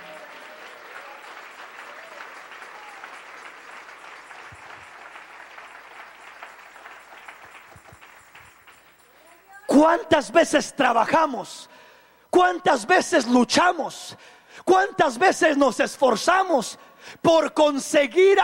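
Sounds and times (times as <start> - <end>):
cheering voices: 0.0 - 6.4
audience applause: 0.0 - 9.3
speech: 9.8 - 11.7, 12.4 - 18.4.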